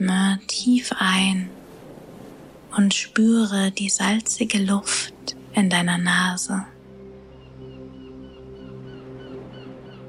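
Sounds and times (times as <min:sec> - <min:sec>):
speech: 0:00.0 - 0:01.6, 0:02.7 - 0:06.7
ocean waves washing ashore: 0:00.0 - 0:06.8
birds calling: 0:07.2 - 0:10.0.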